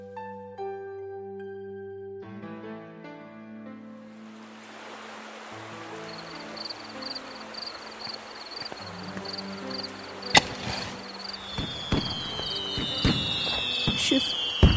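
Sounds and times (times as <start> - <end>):
chirping insects: 5.7 - 14.7
fireworks exploding: 8.1 - 14.7.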